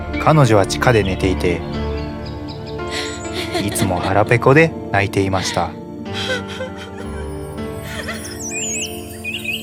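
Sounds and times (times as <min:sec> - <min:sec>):
speech: 0:00.3 - 0:01.8, 0:03.6 - 0:05.8
small birds chirping: 0:00.7 - 0:04.4, 0:07.3 - 0:09.6
laughter: 0:02.9 - 0:04.5, 0:05.3 - 0:08.5.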